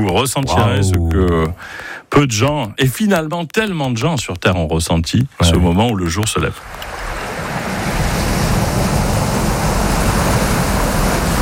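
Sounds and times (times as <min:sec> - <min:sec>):
speech: 0:00.0 - 0:07.2
sea waves breaking on a beach: 0:06.6 - 0:11.3.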